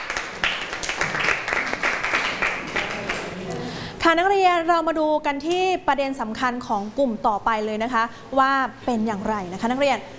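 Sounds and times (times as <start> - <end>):
class of students applauding: 0.0 - 3.4
speech: 4.1 - 10.1.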